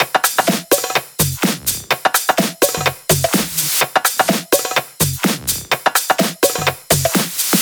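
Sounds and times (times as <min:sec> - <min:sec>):
drum kit beat at 126 BPM: 0:00.0 - 0:07.5.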